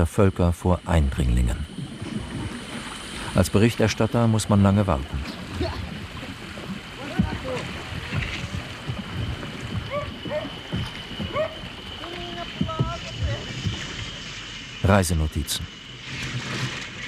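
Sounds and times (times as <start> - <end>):
speech: 0.0 - 1.7, 3.4 - 5.8, 14.9 - 15.8
boat moving along a river in the Brazilian rainforest: 0.0 - 17.0
steady whine: 0.0 - 17.0
faint scattered calls: 5.2 - 15.0.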